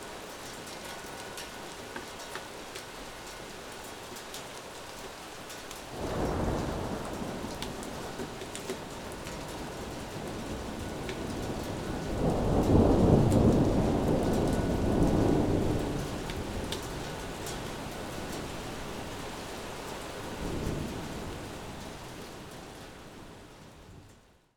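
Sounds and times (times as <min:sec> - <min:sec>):
thunderstorm: 0:05.9 - 0:24.2.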